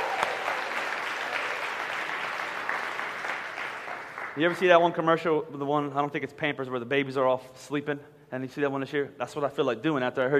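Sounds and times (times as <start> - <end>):
group clapping: 0.0 - 4.6
speech: 4.4 - 10.3.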